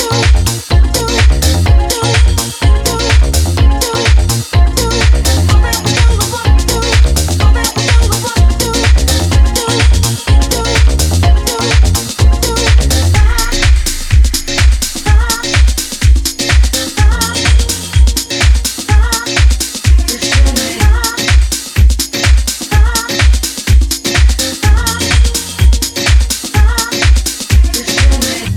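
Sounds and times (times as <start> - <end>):
dub music: 0.0 - 28.5.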